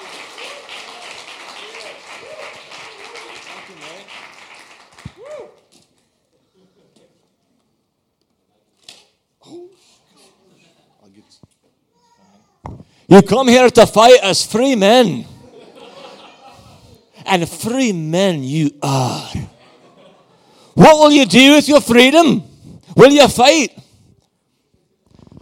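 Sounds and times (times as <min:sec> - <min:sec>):
cheering voices: 0:00.0 - 0:03.8
audience applause: 0:00.0 - 0:05.3
laughter: 0:06.4 - 0:07.4, 0:15.4 - 0:17.2, 0:19.2 - 0:20.7
speech: 0:13.1 - 0:15.3, 0:17.3 - 0:19.4, 0:20.8 - 0:23.8.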